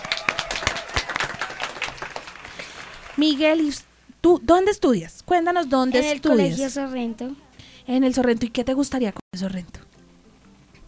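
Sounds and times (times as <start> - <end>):
applause: 0.0 - 3.8
speech: 3.2 - 9.8.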